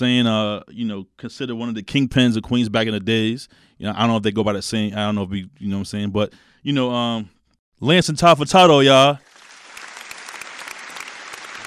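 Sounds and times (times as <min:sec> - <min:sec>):
speech: 0:00.0 - 0:09.3
crowd applause: 0:09.3 - 0:11.6.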